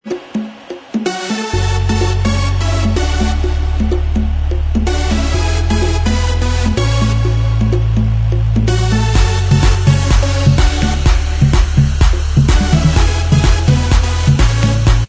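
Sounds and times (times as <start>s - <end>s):
instrumental music: 0.0s - 15.0s.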